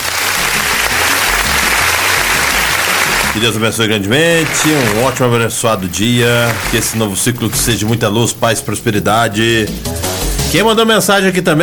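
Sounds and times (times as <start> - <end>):
applause for birthday person: 0.0 - 7.9
speech: 3.4 - 11.6.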